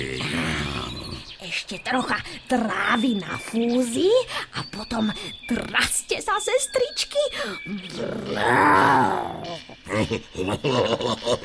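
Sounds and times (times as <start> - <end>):
animal growling: 0.0 - 1.3, 7.8 - 9.7
speech: 1.6 - 11.4
laughter: 9.8 - 11.4.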